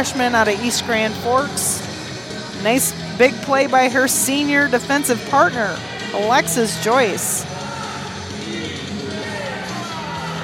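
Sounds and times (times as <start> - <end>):
speech: 0.0 - 1.9, 2.6 - 7.5
college sports fans doing a cheer: 0.0 - 10.4.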